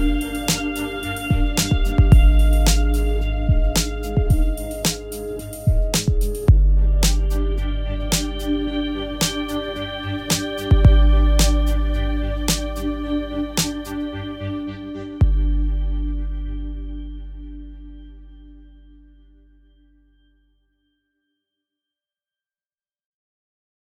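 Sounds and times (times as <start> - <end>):
tense driving music: 0.0 - 19.1.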